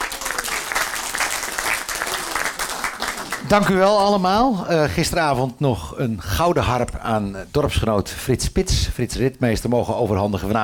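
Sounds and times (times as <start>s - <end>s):
audience applause: 0.0s - 4.2s
speech: 3.5s - 10.6s.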